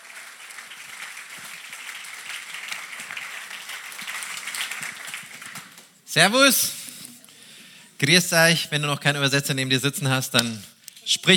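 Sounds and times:
audience applause in church: 0.0 - 5.9
speech: 6.1 - 6.8, 8.0 - 11.3.

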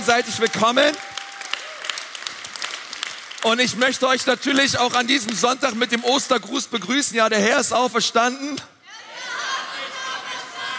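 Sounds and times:
audience applause: 0.0 - 6.2
speech: 0.1 - 1.2, 3.4 - 8.8.

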